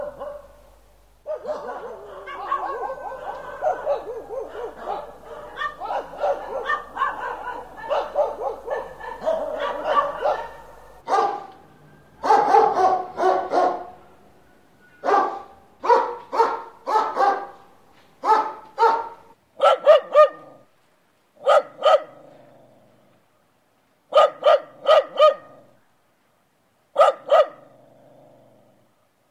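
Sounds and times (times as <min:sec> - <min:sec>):
dog barking: 0:00.0 - 0:11.6, 0:12.2 - 0:14.0, 0:15.0 - 0:20.7, 0:21.4 - 0:22.4, 0:24.1 - 0:25.7, 0:27.0 - 0:27.7.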